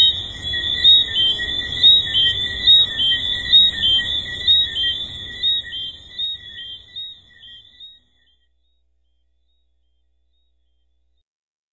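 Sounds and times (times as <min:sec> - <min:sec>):
chorus of tree frogs chirping: 0:00.0 - 0:08.8.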